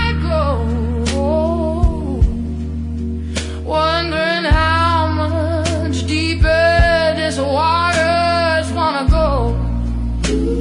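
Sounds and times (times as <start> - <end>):
woman singing blues jazz: 0.0 - 2.7, 3.4 - 10.5.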